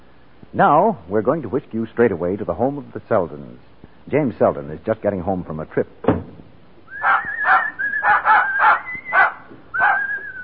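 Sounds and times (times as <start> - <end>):
speech: 0.5 - 6.3
dog barking: 7.0 - 10.1.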